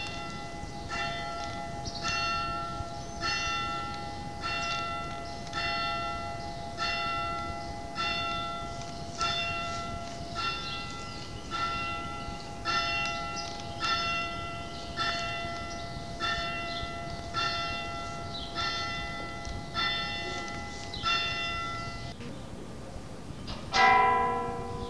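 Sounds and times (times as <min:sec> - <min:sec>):
church bells ringing for dawn mass or rosary: 0:00.0 - 0:22.2, 0:23.7 - 0:24.8.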